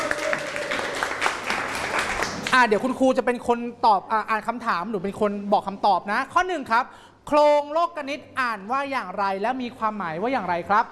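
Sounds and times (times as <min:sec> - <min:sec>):
students clapping: 0:00.0 - 0:02.6
speech: 0:02.5 - 0:10.9.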